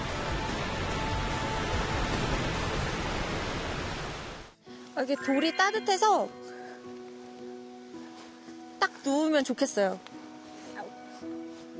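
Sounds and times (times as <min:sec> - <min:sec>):
waterfall roaring: 0:00.0 - 0:04.6
speech: 0:05.0 - 0:06.5, 0:09.0 - 0:10.2.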